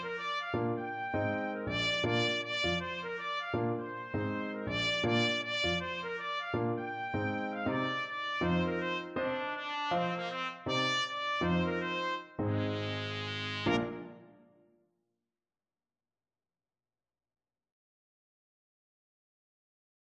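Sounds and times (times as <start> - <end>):
trumpet: 0.0 - 14.5.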